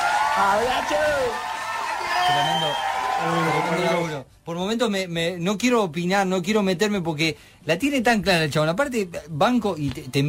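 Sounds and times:
applause and cheering sound effect: 0.0 - 4.2
speech: 0.4 - 10.2.

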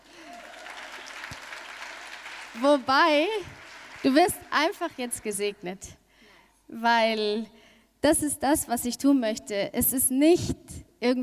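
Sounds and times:
audience applause: 0.0 - 4.5
speech: 2.6 - 6.0, 6.7 - 11.2.

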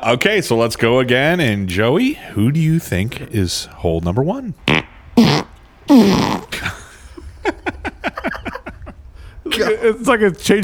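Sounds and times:
speech: 0.0 - 4.8, 9.8 - 10.6
fart: 4.6 - 6.7
laughter: 6.4 - 10.6.

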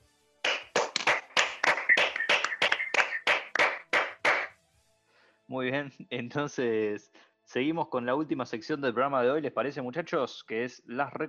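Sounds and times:
applause: 0.4 - 4.5
laughter: 1.2 - 4.5
speech: 5.5 - 11.2.

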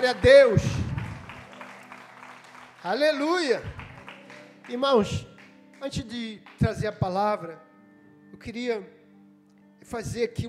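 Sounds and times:
speech: 0.0 - 0.8, 2.8 - 3.8, 4.7 - 7.7, 8.3 - 9.0, 9.8 - 10.4
audience applauding: 0.0 - 6.6.

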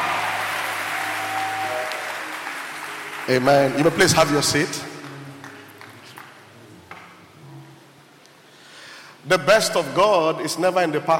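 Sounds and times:
audience clapping: 0.0 - 7.1
speech: 3.3 - 4.9, 9.3 - 11.1.

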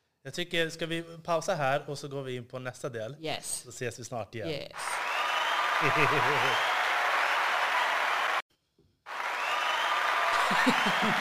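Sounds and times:
speech: 0.2 - 5.1, 5.8 - 6.7, 10.6 - 11.1
applause: 4.8 - 8.4, 9.1 - 11.1
laughter: 5.7 - 6.8, 10.0 - 11.1.

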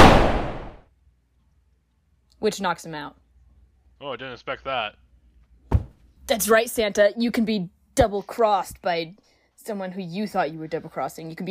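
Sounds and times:
gunfire burst: 0.0 - 0.8
speech: 2.4 - 3.2, 4.0 - 5.0, 6.3 - 11.5.

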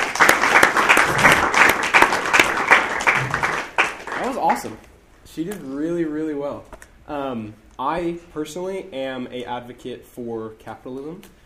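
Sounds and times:
audience applause: 0.0 - 4.7
speech: 4.6 - 11.4.

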